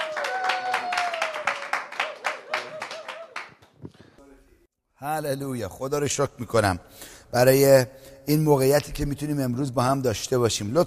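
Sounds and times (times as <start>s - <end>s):
congregation applauding at a church service: 0.0s - 4.2s
speech: 5.0s - 10.8s.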